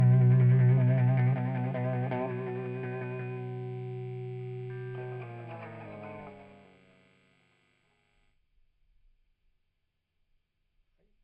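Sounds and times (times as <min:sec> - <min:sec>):
electric guitar: 0:00.0 - 0:08.0.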